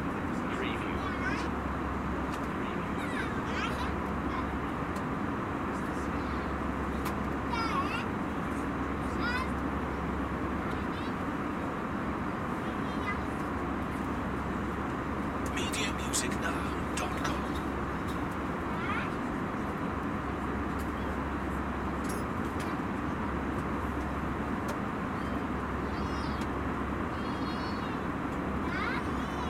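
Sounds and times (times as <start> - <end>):
airplane ambience: 0.0 - 29.4.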